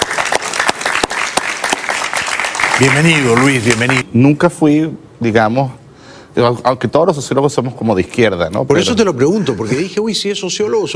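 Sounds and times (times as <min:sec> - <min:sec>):
studio audience applause welcoming a guest: 0:00.0 - 0:04.0
speech: 0:02.8 - 0:05.8, 0:06.4 - 0:10.9.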